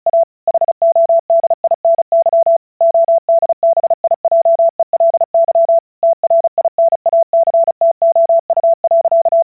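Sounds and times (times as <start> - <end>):
Morse code CW beeps at 35 words per minute: 0.1 - 9.5.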